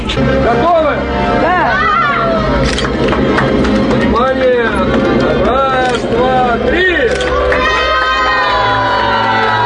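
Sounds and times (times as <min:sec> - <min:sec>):
crowd cheering at a school opening ribbon cutting: 0:00.2 - 0:09.6
children shouting: 0:01.5 - 0:02.7, 0:07.3 - 0:09.6.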